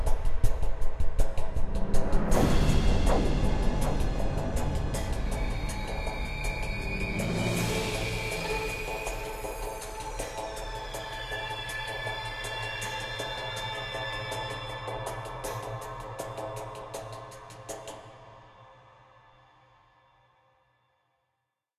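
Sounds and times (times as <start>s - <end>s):
tension music: 0.0s - 17.0s.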